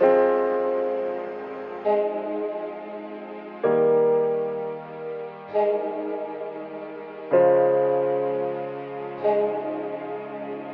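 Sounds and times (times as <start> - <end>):
sad piano: 0.0 - 10.7.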